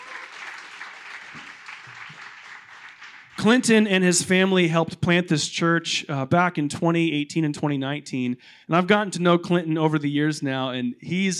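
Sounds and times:
audience applause: 0.0 - 3.4
speech: 3.4 - 11.3.

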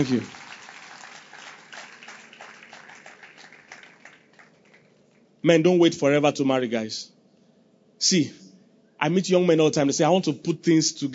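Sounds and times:
speech: 0.0 - 0.4, 5.4 - 7.2, 8.0 - 8.4, 9.0 - 11.1
audience clapping: 0.0 - 5.3.

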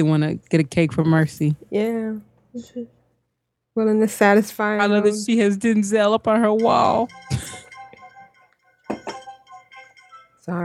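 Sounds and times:
speech: 0.0 - 3.0, 3.8 - 7.6, 10.4 - 10.6
phone notification chime: 6.6 - 10.6.

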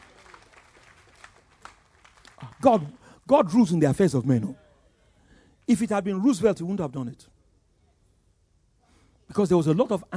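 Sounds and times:
audience applause: 0.0 - 3.1
speech: 2.6 - 4.6, 5.7 - 7.3, 9.3 - 10.1.

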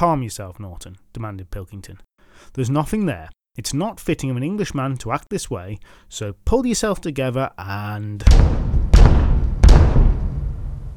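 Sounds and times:
speech: 0.0 - 8.7
loud raps on a door: 8.3 - 10.9.

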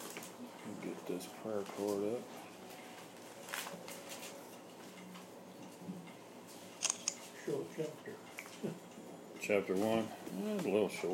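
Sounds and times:
speech: 1.1 - 2.4, 7.5 - 11.1
camera shutter clicking during a Bible study: 6.8 - 7.2.

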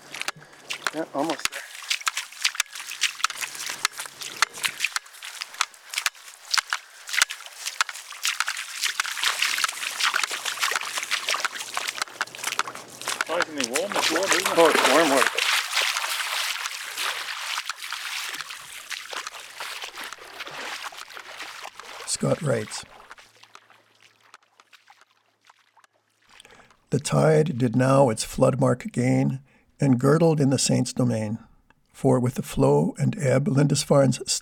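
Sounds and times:
bare feet sloshing through tidal pools and wet sand toward Holy Island, Lindisfarne: 0.0 - 27.4
speech: 0.9 - 1.6, 13.5 - 15.4, 22.2 - 23.0, 26.9 - 34.4.

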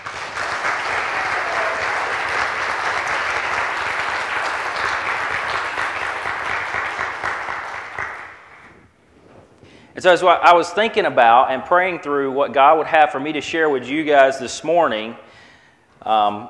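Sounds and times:
audience applause: 0.0 - 8.7
speech: 10.0 - 15.3, 16.1 - 16.4.

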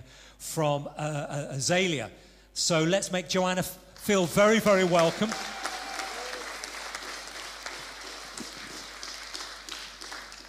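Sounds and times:
speech: 0.4 - 5.6
audience applause: 4.5 - 10.4
audience cheering: 4.8 - 9.3.

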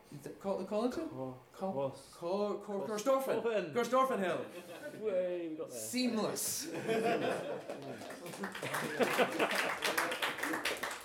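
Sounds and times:
speech: 0.2 - 10.0
laughter: 6.6 - 10.8
audience applause: 7.5 - 11.0.

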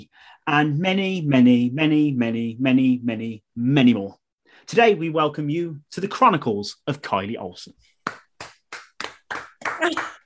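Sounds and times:
speech: 0.5 - 8.2
hands clapping: 8.0 - 10.2.

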